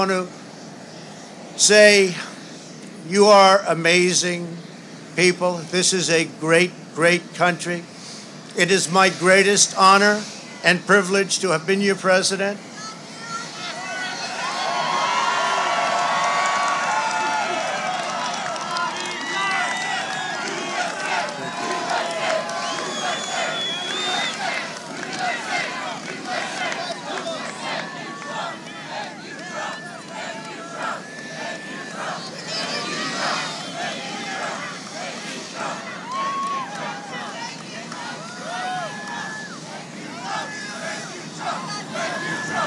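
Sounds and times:
speech: 0:00.0 - 0:00.4, 0:01.6 - 0:02.3, 0:03.0 - 0:07.9, 0:08.6 - 0:12.7
small crowd cheering: 0:13.4 - 0:42.6.

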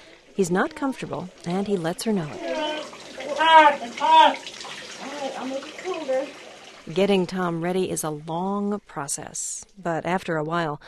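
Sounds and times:
shower water running: 0:00.2 - 0:08.3
speech: 0:00.4 - 0:02.5, 0:03.4 - 0:04.6, 0:05.2 - 0:10.8.

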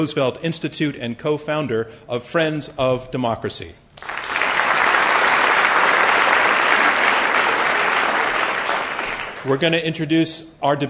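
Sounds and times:
speech: 0:00.0 - 0:04.1, 0:09.4 - 0:10.8
audience applause: 0:04.0 - 0:09.6.

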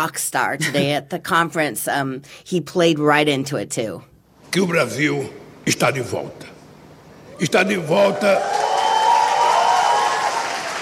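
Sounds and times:
speech: 0:00.0 - 0:06.5, 0:07.4 - 0:08.7
conference audience applauding Brazilian President Lula's speech: 0:07.5 - 0:10.8.

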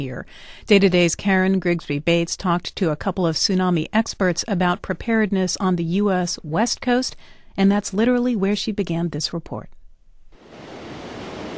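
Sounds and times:
speech: 0:00.0 - 0:09.8
ocean surf at high tide at Santa Monica: 0:10.4 - 0:11.5.

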